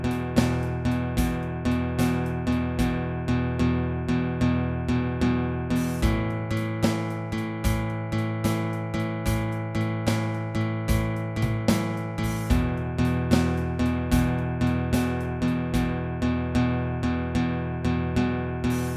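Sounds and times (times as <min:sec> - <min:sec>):
12 bar blues shuffle in E: 0:00.0 - 0:03.0, 0:05.7 - 0:16.0, 0:18.7 - 0:18.9
drums: 0:00.0 - 0:03.0, 0:05.7 - 0:16.0, 0:18.7 - 0:18.9
guitar: 0:00.0 - 0:18.9.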